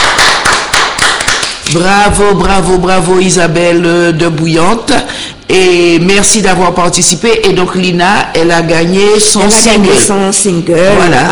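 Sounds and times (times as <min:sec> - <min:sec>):
applause: 0:00.0 - 0:01.8
speech: 0:01.7 - 0:11.3.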